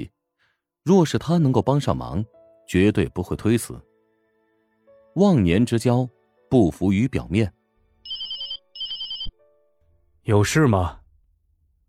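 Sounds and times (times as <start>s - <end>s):
speech: 0.8s - 3.9s, 5.2s - 7.6s, 10.3s - 11.0s
telephone ringing in high warbling electronic tone: 8.1s - 9.4s.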